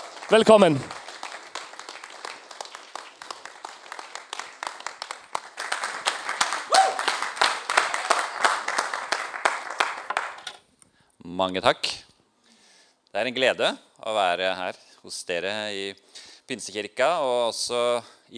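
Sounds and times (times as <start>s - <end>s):
church audience applause: 0.0s - 10.6s
speech: 0.3s - 1.0s, 11.4s - 12.0s, 13.2s - 18.3s.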